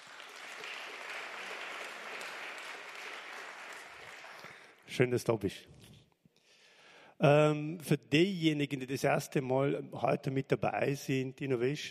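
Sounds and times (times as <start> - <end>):
audience applause: 0.0 - 4.8
speech: 5.0 - 5.8, 7.2 - 11.8.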